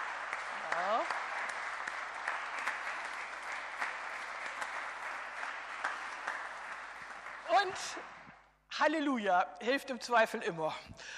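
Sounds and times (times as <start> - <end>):
church congregation applauding: 0.0 - 8.4
speech: 7.6 - 8.2, 8.8 - 11.1.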